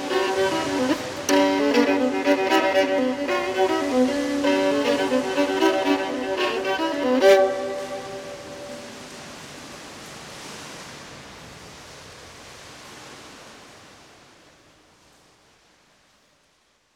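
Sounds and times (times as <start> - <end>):
violin playing in a cave: 0.0 - 9.1.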